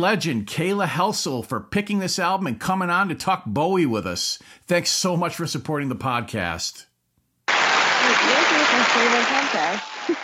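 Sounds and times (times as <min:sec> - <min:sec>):
speech: 0:00.0 - 0:06.9
hand claps: 0:07.5 - 0:10.2.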